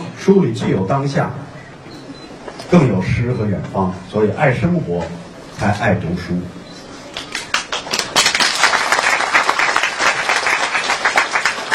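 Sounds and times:
speech: 0:00.2 - 0:01.5, 0:02.7 - 0:06.6
audience applause: 0:07.3 - 0:11.7.

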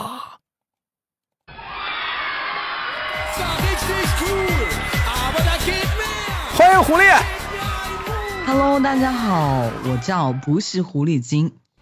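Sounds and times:
crowd cheering and whooping: 0:01.5 - 0:10.7
applause: 0:02.3 - 0:10.1
speech: 0:06.8 - 0:07.4, 0:08.5 - 0:11.6.

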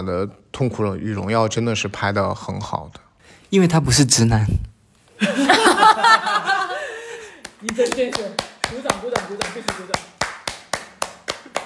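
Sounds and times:
speech: 0:00.0 - 0:06.5, 0:07.6 - 0:10.1
laughter: 0:05.2 - 0:07.4
hands clapping: 0:07.4 - 0:11.6.

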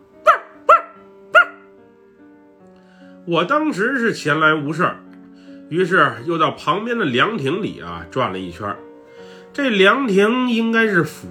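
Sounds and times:
stray dog barking: 0:00.2 - 0:01.7
speech: 0:03.2 - 0:05.0, 0:05.7 - 0:08.8, 0:09.6 - 0:11.2.

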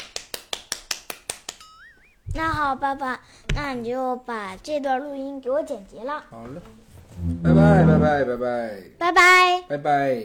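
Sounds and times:
hand clapping: 0:00.0 - 0:02.6
speech: 0:02.4 - 0:10.2.

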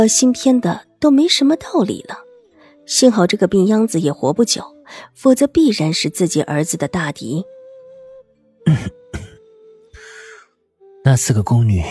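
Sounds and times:
speech: 0:00.0 - 0:02.2, 0:02.9 - 0:07.6, 0:11.0 - 0:11.8
low cough: 0:08.7 - 0:09.4.

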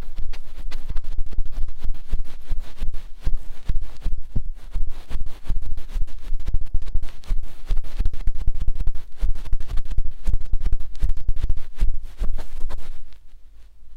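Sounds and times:
vigorous ear rubbing: 0:00.0 - 0:13.9.

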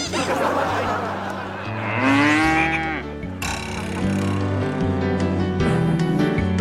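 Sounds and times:
laughter: 0:00.0 - 0:02.7
dairy cow mooing: 0:01.6 - 0:06.5.

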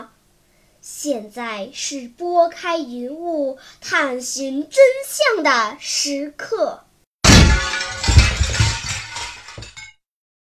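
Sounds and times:
speech: 0:01.0 - 0:06.9
shop window glass being smashed: 0:07.2 - 0:10.0
glass shards tinkling: 0:07.3 - 0:10.0.

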